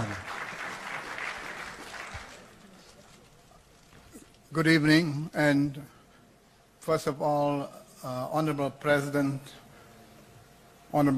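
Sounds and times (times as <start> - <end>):
audience applause: 0.0 - 2.8
speech: 4.6 - 6.0, 6.8 - 9.6, 10.9 - 11.1.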